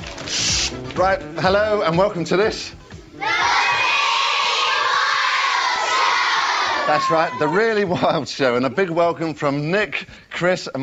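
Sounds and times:
speech: 0:01.0 - 0:03.4, 0:06.9 - 0:10.8
crowd of children from the Bristol area cheering: 0:03.2 - 0:07.8.

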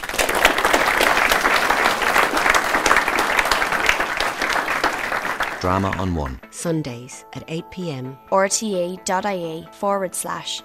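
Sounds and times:
applause: 0:00.0 - 0:06.4
speech: 0:05.6 - 0:10.6.

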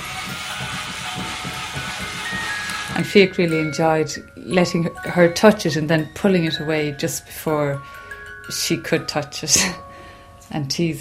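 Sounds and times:
toy dog-shaped car electronic buzz: 0:00.0 - 0:03.3
speech: 0:03.0 - 0:09.9, 0:10.5 - 0:11.0.

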